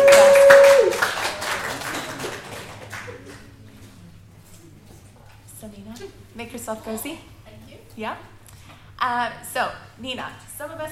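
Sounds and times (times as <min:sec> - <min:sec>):
audience applause: 0:00.0 - 0:03.6
speech: 0:06.7 - 0:07.4, 0:08.0 - 0:08.4, 0:09.0 - 0:10.9.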